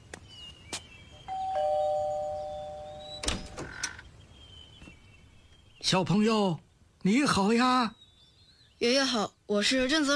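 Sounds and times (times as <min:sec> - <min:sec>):
doorbell ringing: 0:01.3 - 0:03.4
speech: 0:05.9 - 0:08.0, 0:08.8 - 0:10.1.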